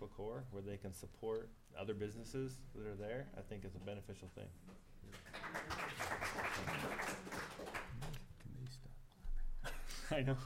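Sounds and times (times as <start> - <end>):
speech: 0.0 - 5.3, 10.1 - 10.4
audience applause: 5.2 - 8.2.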